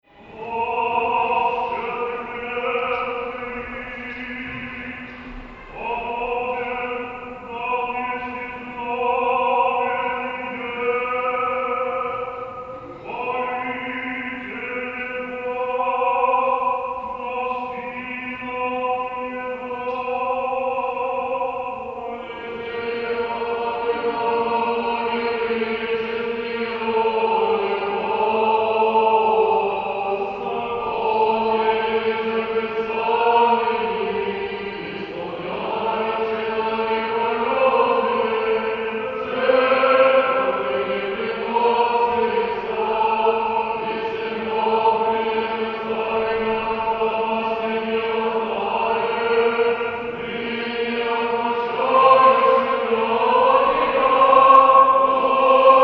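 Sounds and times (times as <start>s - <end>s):
choir singing a sticheron: 0.0s - 55.8s.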